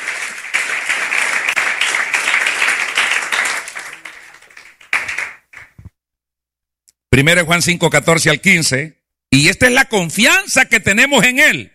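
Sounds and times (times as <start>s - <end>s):
audience applauding: 0.0s - 5.8s
speech: 7.2s - 11.7s.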